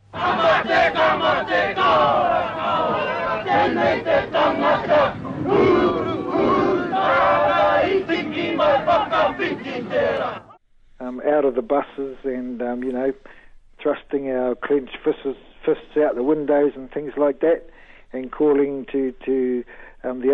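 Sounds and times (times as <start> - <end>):
protesters chanting and screaming defiance: 0.0 - 10.6
speech: 11.2 - 20.3.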